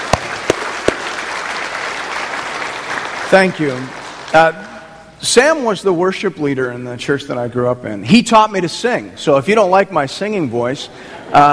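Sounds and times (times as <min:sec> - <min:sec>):
hand claps at a church service welcoming two guests: 0:00.0 - 0:04.7
low noise: 0:00.0 - 0:11.5
speech: 0:03.3 - 0:11.5.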